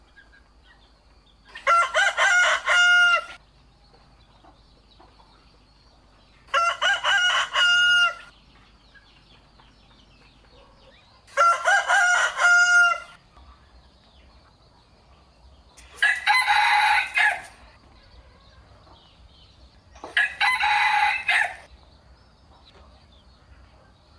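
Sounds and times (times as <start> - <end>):
rooster crowing: 1.6 - 3.4, 6.5 - 8.3, 11.3 - 13.2, 16.0 - 17.6, 20.1 - 21.7.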